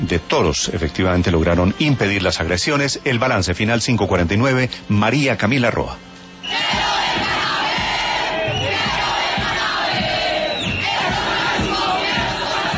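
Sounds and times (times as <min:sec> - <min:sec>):
speech: 0:00.0 - 0:06.8
protesters chanting slogans: 0:06.4 - 0:12.7.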